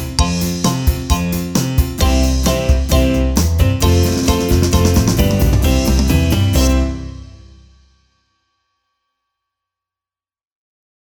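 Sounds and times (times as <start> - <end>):
preschool percussion: 0.0 - 8.0.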